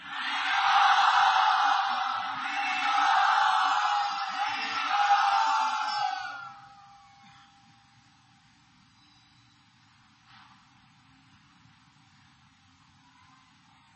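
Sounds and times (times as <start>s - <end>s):
crowd cheering and whooping to welcome a speaker in Mumbai: 0.0s - 6.8s.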